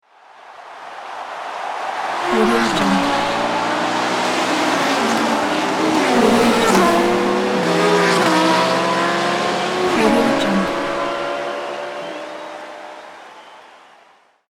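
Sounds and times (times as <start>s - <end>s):
crowd cheering: 0.0s - 14.5s
racing cars: 1.0s - 14.1s.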